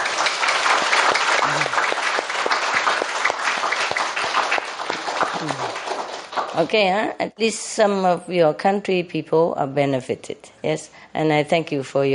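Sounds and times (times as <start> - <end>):
audience applause: 0.0 - 6.8
speech: 6.6 - 12.1.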